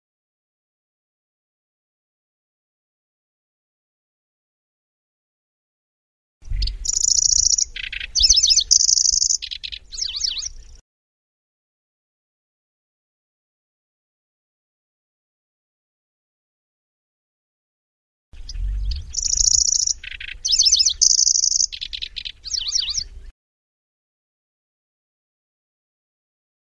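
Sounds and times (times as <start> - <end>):
lanceolated warbler singing: 6.4 - 10.8, 18.4 - 23.3.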